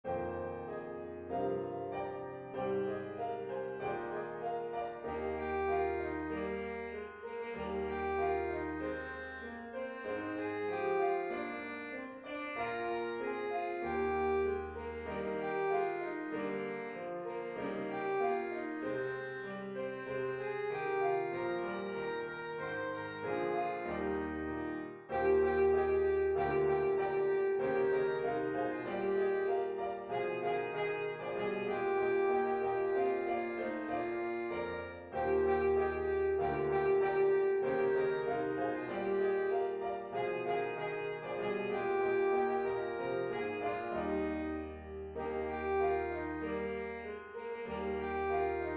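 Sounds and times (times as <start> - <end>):
Christmas song: 0.0 - 48.7.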